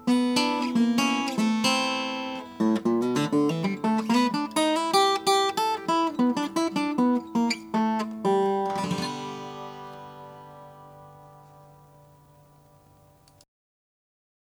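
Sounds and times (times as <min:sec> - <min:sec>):
Gibson B25N cherry burst acoustic guitar: 0:00.0 - 0:13.4.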